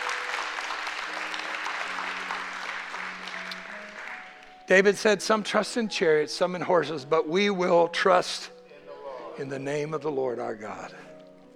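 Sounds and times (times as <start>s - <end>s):
audience applause: 0.0s - 4.6s
speech: 4.7s - 8.6s, 9.4s - 11.1s.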